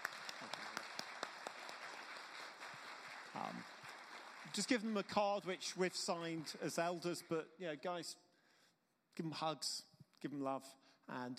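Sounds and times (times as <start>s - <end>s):
audience applause: 0.0s - 7.4s
speech: 0.4s - 0.7s, 3.3s - 3.8s, 4.4s - 8.2s, 9.2s - 11.3s.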